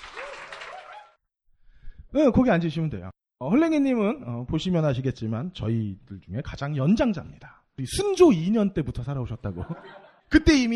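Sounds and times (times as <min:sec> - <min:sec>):
audience applause welcoming a guest: 0:00.0 - 0:01.1
speech: 0:02.1 - 0:10.7
laughter: 0:09.4 - 0:10.3.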